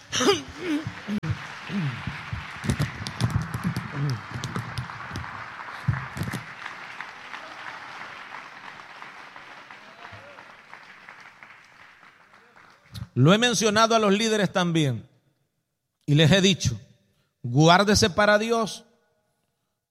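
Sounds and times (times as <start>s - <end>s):
audience clapping: 0.0s - 13.2s
speech: 0.2s - 1.2s, 13.2s - 15.1s, 16.1s - 16.8s, 17.4s - 18.9s.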